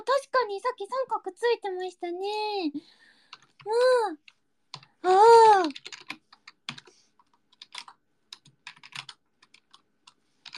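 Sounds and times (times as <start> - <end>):
speech: 0.0 - 4.3, 5.0 - 6.0
typing a chat message on a computer keyboard: 3.3 - 4.9, 5.6 - 10.5.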